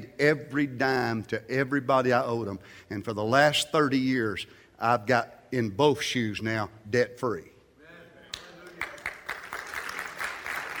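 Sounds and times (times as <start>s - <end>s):
speech: 0.2s - 7.5s
light hand clapping: 8.3s - 10.7s.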